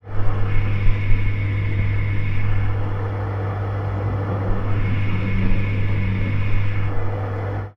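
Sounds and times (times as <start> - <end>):
washing machine recorded with a contact mic: 0.0 - 7.7.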